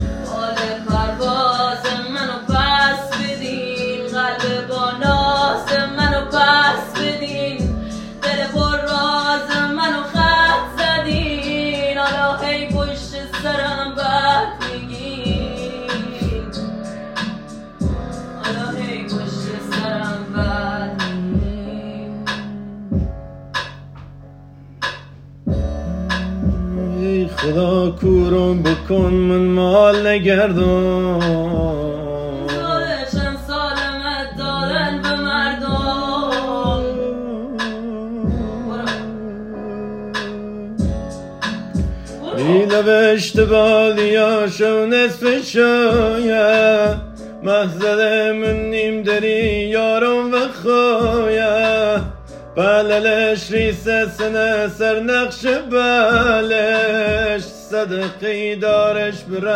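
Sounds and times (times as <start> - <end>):
sad music: 0.0 - 12.2, 13.0 - 59.5.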